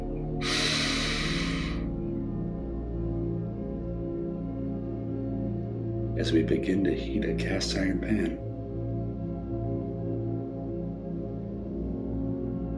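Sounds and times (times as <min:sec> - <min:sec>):
soft sustained music: 0:00.0 - 0:12.7
person taking a deep breath in: 0:00.4 - 0:02.0
speech: 0:06.2 - 0:08.4.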